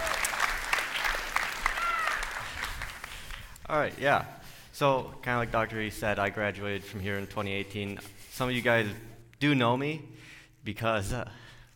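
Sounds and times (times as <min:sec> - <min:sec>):
audience applause: 0:00.0 - 0:03.6
speech: 0:03.7 - 0:11.4.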